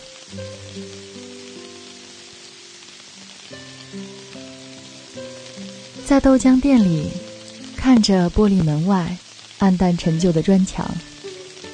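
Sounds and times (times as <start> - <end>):
heavy rain: 0.0 - 11.7
speech: 0.3 - 1.1, 6.1 - 7.2, 7.8 - 11.1.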